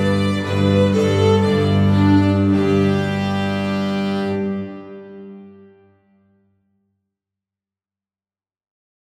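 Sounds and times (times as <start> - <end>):
bagpipes: 0.0 - 5.8.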